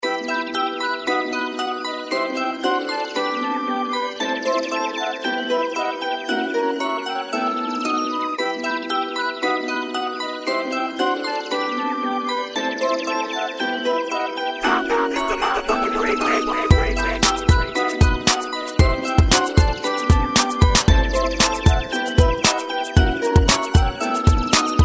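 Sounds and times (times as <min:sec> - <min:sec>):
remix music: 0:00.0 - 0:24.8.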